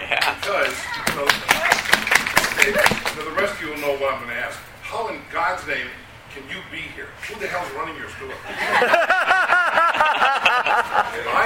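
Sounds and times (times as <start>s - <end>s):
laughter: 0.0s - 1.0s, 8.3s - 11.4s
audience clapping: 0.0s - 3.3s
speech: 2.6s - 9.1s, 10.0s - 11.4s.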